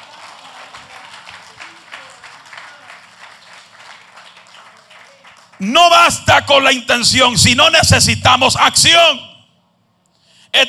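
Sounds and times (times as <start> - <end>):
audience applause: 0.0 - 5.6
speech: 5.6 - 9.3.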